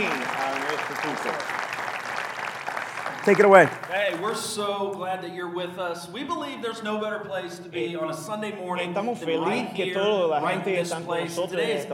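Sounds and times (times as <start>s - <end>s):
round of applause: 0.0s - 4.7s
speech: 1.0s - 1.5s, 3.2s - 11.9s.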